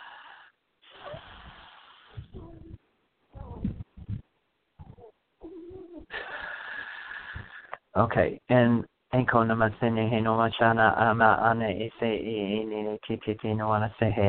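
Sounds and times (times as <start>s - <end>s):
cleansing breath during a spiritual reading session: 0.0s - 2.3s, 6.1s - 7.8s
speech: 8.0s - 14.2s.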